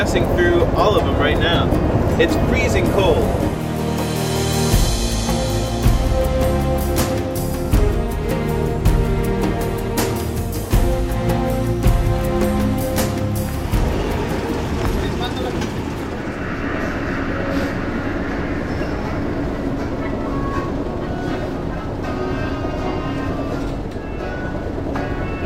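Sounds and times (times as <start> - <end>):
speech: 0.0 - 3.7
ferry ride through the sea islands of Chile: 0.0 - 25.4.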